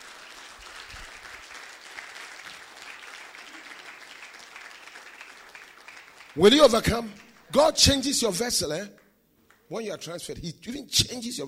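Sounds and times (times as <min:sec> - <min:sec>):
audience clapping: 0:00.0 - 0:08.1
speech: 0:06.4 - 0:09.0, 0:09.7 - 0:11.4.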